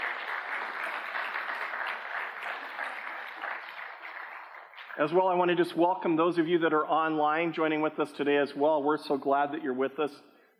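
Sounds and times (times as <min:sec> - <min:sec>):
church congregation applauding volunteers during a morning service: 0:00.0 - 0:05.8
speech: 0:05.0 - 0:10.5.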